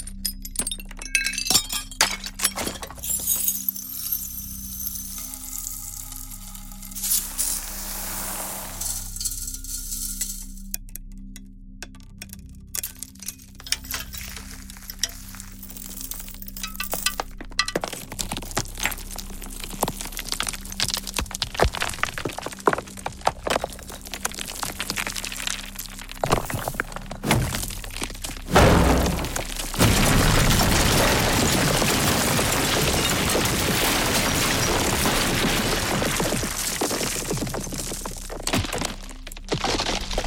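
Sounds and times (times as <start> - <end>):
stones and debris: 0.0 - 10.6, 12.7 - 40.2.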